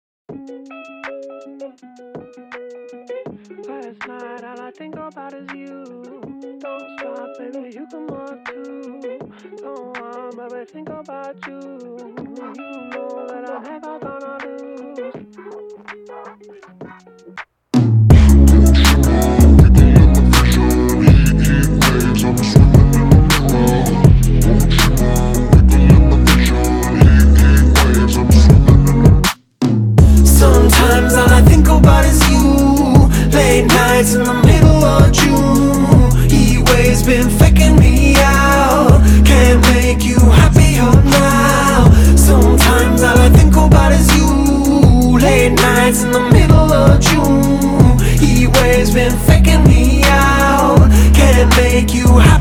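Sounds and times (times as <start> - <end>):
bass-boosted theme music: 17.8 - 52.3.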